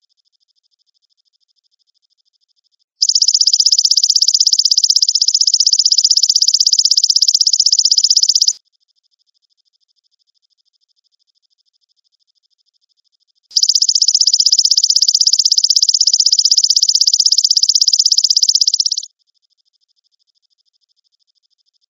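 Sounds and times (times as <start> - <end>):
grasshopper trilling: 3.0 - 8.6, 13.6 - 19.1.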